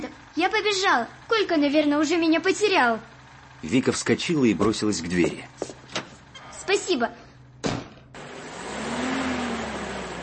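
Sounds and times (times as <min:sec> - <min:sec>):
UAZ off-road vehicle pulling up: 0:00.0 - 0:10.2
speech: 0:00.4 - 0:05.8, 0:06.7 - 0:07.2.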